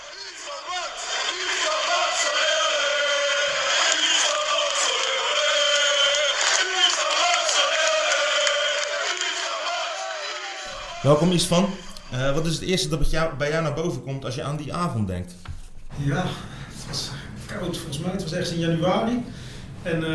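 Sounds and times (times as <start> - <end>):
football crowd in Kortrijk chanting for a player after a cup match: 0.0 - 12.4
speech: 11.0 - 20.1.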